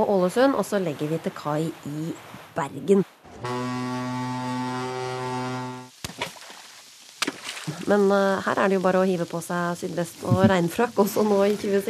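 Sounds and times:
speech: 0.0 - 3.7, 7.9 - 11.8
coastal passenger ship horn blast: 3.3 - 5.9.

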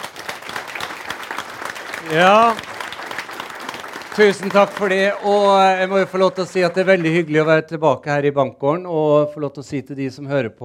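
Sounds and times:
thunderous audience applause: 0.0 - 7.6
speech: 2.0 - 2.7, 4.2 - 10.6.

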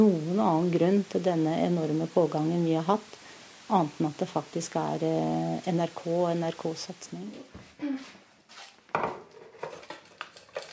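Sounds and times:
speech: 0.0 - 8.2
soft steady hiss: 0.0 - 10.7
kitchen dishes and cutlery clinking: 9.0 - 10.7.

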